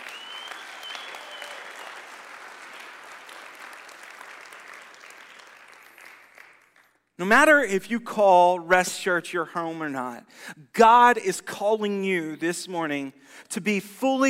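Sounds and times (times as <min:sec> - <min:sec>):
whoops: 0:00.0 - 0:02.0
audience applause: 0:00.0 - 0:07.0
speech: 0:07.2 - 0:14.2.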